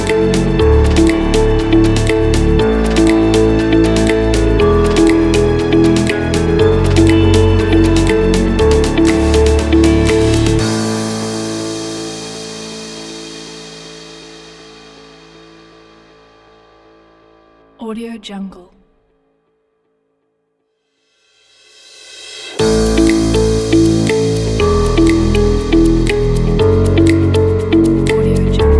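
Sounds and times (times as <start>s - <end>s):
inspiring pop music: 0.0s - 13.0s, 22.4s - 28.7s.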